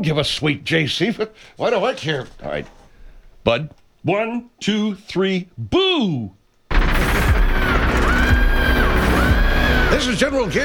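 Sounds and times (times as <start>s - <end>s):
speech: 0.0s - 2.8s, 3.4s - 6.4s, 9.9s - 10.6s
loud distorted music: 6.7s - 10.6s
harsh screamed vocals in a played song recording: 7.4s - 10.6s.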